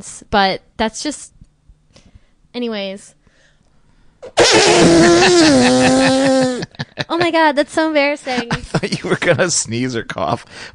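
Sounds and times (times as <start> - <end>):
speech: 0.0 - 1.4, 2.6 - 3.2, 4.2 - 10.7
fart: 4.4 - 6.7
laughter: 4.4 - 7.4, 8.3 - 9.4.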